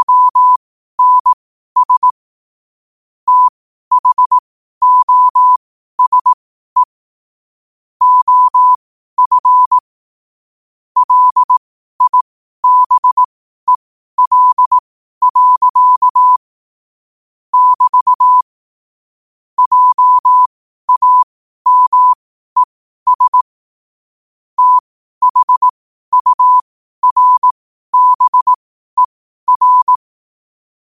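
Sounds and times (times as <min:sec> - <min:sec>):
morse code at 5 wpm: 0:00.0 - 0:02.2, 0:03.3 - 0:06.9, 0:08.0 - 0:09.9, 0:11.0 - 0:16.4, 0:17.5 - 0:18.5, 0:19.6 - 0:23.5, 0:24.6 - 0:30.0.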